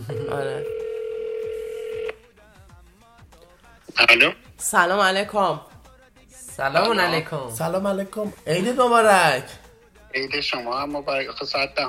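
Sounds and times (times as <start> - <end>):
speech: 0.0 - 0.8, 4.0 - 5.7, 6.6 - 11.8
telephone tone while dialing a call: 0.0 - 2.2.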